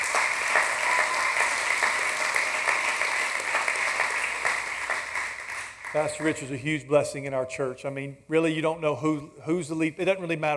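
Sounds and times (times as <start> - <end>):
audience applause: 0.0 - 6.5
speech: 6.0 - 10.5.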